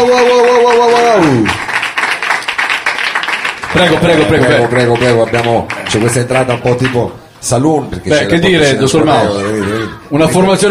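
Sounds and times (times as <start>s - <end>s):
speech: 0.0s - 1.6s, 3.8s - 10.6s
crowd applauding: 0.0s - 7.2s.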